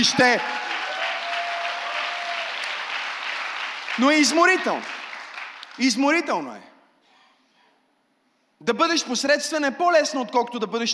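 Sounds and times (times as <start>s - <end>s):
speech: 0.0s - 0.6s, 4.0s - 5.0s, 5.8s - 6.7s, 8.6s - 10.9s
audience applauding: 0.0s - 5.8s.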